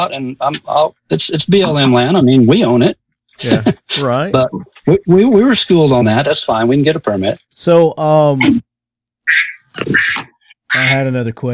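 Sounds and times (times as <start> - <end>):
speech: 0.0 - 8.7, 9.3 - 11.5
duck quacking: 9.3 - 11.0.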